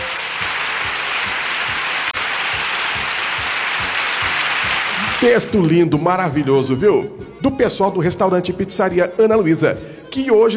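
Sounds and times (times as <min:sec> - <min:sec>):
audience clapping: 0:00.0 - 0:05.6
speech: 0:05.2 - 0:10.5.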